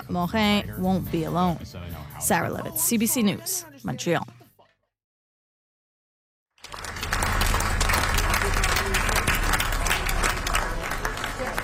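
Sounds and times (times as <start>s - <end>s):
speech: 0.1s - 4.3s
crowd applause on street for singer: 6.6s - 11.6s.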